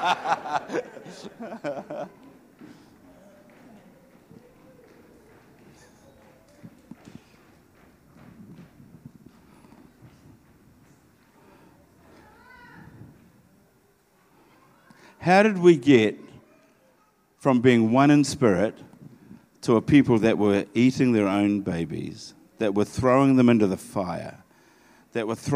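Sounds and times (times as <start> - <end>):
laughter: 0.0 - 2.6
speech: 0.0 - 2.9, 15.2 - 16.2, 17.4 - 18.9, 19.6 - 24.4, 25.2 - 25.5
herd of horses passing, clopping hoofbeats: 4.1 - 11.3.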